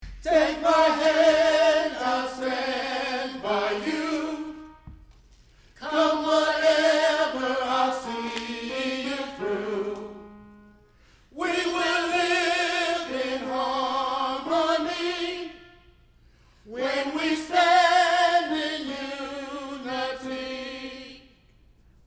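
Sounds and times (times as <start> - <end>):
tenor singing: 0.0 - 5.1, 5.7 - 16.0, 16.7 - 21.6.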